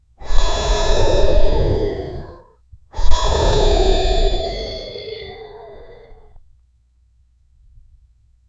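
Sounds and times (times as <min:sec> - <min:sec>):
angry dragon: 0:00.2 - 0:02.4, 0:03.0 - 0:06.4.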